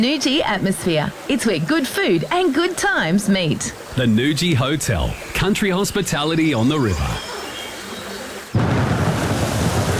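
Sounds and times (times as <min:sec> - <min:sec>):
speech: 0:00.0 - 0:07.3
rain falling: 0:02.0 - 0:09.9
thunder: 0:08.6 - 0:09.9.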